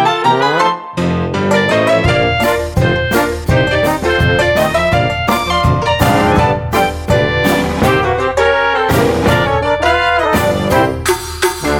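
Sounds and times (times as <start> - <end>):
rag at slower tempo: 0.1 - 11.7.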